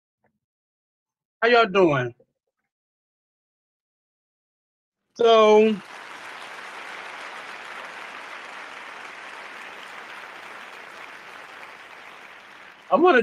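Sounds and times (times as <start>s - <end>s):
speech: 1.4s - 2.2s, 5.2s - 6.0s, 12.9s - 13.2s
audience applause at a live show: 5.2s - 13.2s.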